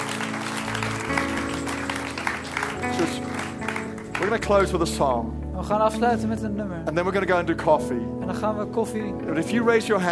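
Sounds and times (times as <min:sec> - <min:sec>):
audience applause: 0:00.0 - 0:04.8
speech: 0:04.3 - 0:10.0.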